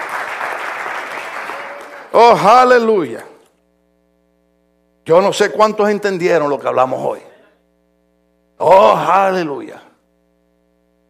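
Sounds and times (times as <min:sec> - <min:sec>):
audience applause: 0:00.0 - 0:02.2
speech: 0:02.1 - 0:03.3, 0:05.1 - 0:07.3, 0:08.6 - 0:09.8.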